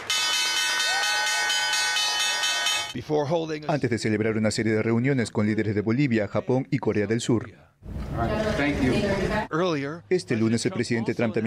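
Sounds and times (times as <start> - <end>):
stock exchange opening bell ringing: 0.0 - 3.0
speech: 3.0 - 11.4.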